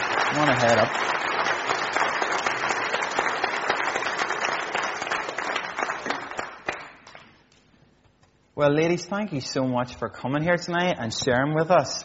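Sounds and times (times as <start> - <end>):
audience applause: 0.0 - 7.2
speech: 0.3 - 1.4, 8.6 - 12.0.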